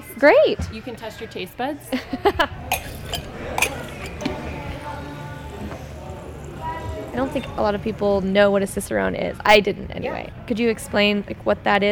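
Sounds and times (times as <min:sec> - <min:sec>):
speech: 0:00.2 - 0:03.2, 0:07.2 - 0:11.9
craft beer samples pouring into glasses: 0:02.6 - 0:05.2.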